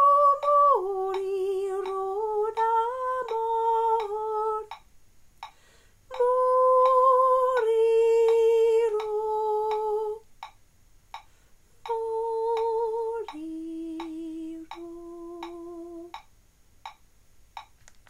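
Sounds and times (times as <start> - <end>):
soprano singing: 0.0 - 4.8, 6.1 - 10.2, 11.9 - 16.2.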